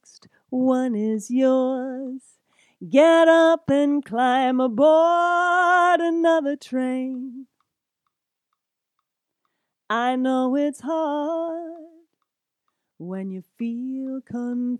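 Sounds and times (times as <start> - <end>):
lead vocal: 0.0 - 7.5, 9.9 - 12.2, 13.0 - 14.7.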